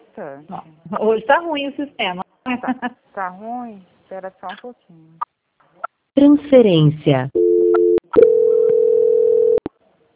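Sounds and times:
speech: 0.2s - 5.3s, 6.2s - 7.4s
telephone dial tone after a dropped call: 7.4s - 9.7s.

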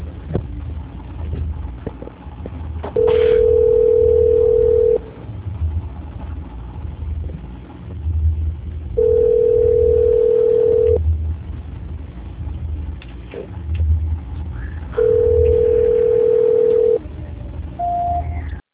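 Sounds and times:
low hum: 0.0s - 18.6s
telephone tones while a call is transferred: 3.0s - 5.1s, 9.0s - 11.0s, 14.9s - 17.0s.

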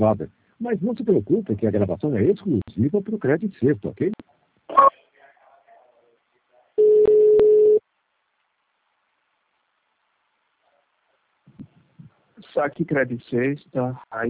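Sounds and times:
speech: 0.0s - 5.0s, 12.6s - 14.2s
telephone line tone during call transfer: 6.8s - 7.8s.

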